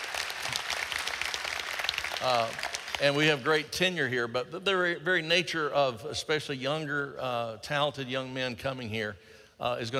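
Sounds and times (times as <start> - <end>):
crowd clapping: 0.0 - 3.7
speech: 2.2 - 9.9.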